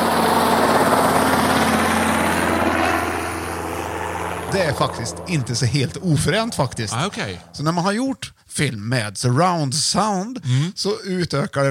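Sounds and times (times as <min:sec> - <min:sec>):
helicopter: 0:00.0 - 0:08.0
speech: 0:04.6 - 0:11.6.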